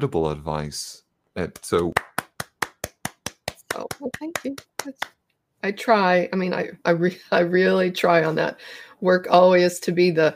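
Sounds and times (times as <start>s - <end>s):
speech: 0.0s - 2.1s, 3.8s - 10.3s
applause, clapping hands: 1.4s - 5.2s.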